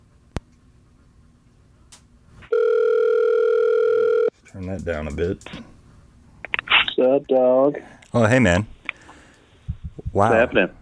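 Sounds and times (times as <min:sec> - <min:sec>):
low quiet hum: 0:00.0 - 0:10.8
outgoing phone call ringing tone: 0:02.5 - 0:04.3
speech: 0:04.6 - 0:05.7, 0:07.0 - 0:08.8, 0:10.2 - 0:10.8.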